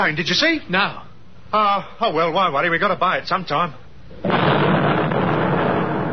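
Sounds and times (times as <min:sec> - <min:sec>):
speech: 0:00.0 - 0:04.8
V-1 flying bomb exploding nearby: 0:04.2 - 0:06.1.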